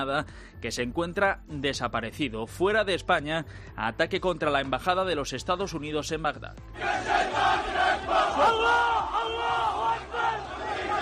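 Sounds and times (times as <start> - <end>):
speech: 0.0 - 9.7
protesters chanting and shouting: 6.7 - 10.9.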